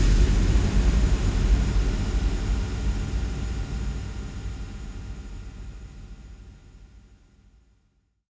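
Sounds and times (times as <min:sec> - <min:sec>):
sub kick drum: 0:00.0 - 0:03.6.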